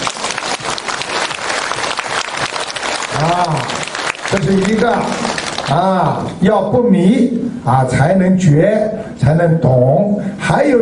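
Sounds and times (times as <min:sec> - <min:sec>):
audience applause: 0:00.0 - 0:05.9
speech: 0:03.2 - 0:10.7.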